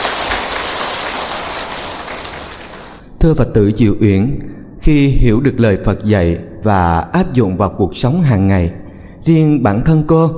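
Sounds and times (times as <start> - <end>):
audience applause: 0.0 - 3.0
speech: 3.2 - 10.3.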